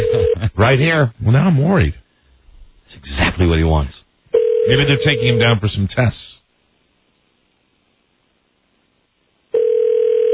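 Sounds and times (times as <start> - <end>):
telephone ringing tone: 0.0 - 0.4, 4.4 - 5.5, 9.5 - 10.3
speech: 0.6 - 2.0, 3.0 - 4.0, 4.7 - 6.2.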